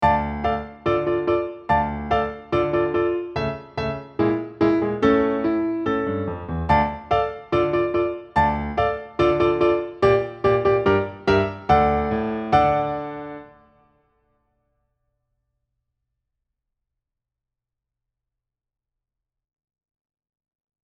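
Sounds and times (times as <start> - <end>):
musical accompaniment: 0.0 - 13.7.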